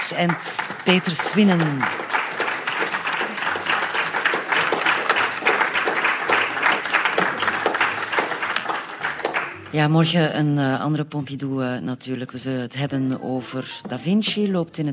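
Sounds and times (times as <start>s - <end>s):
audience applause: 0.0s - 9.8s
speech: 0.1s - 2.2s, 9.7s - 14.9s.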